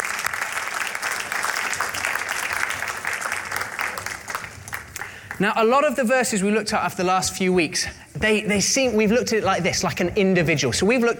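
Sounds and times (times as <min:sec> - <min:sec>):
audience applause: 0:00.0 - 0:05.4
speech: 0:05.4 - 0:11.1.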